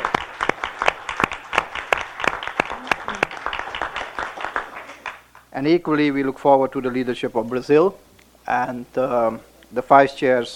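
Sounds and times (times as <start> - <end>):
audience applause: 0.0 - 5.3
speech: 5.6 - 10.5.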